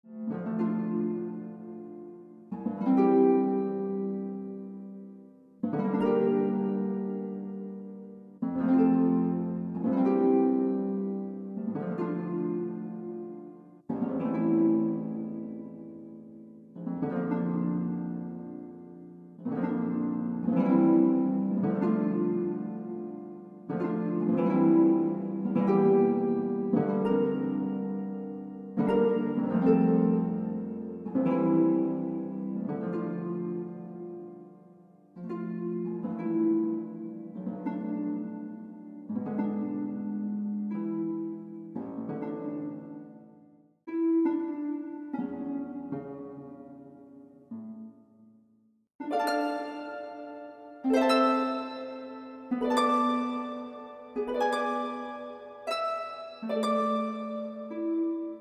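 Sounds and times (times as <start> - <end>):
harp: 0.0 - 48.2, 49.0 - 58.3.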